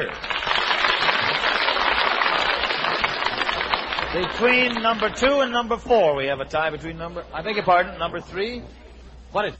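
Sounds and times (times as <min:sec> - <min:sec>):
speech: 0:00.0 - 0:00.3, 0:04.2 - 0:09.5
audience applause: 0:00.0 - 0:05.6.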